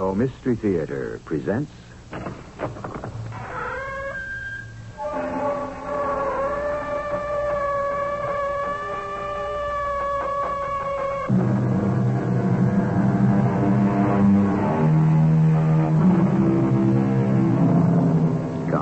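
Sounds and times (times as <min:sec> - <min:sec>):
speech: 0:00.0 - 0:02.3
door creaking open: 0:02.2 - 0:11.4
low rumble: 0:11.3 - 0:18.7.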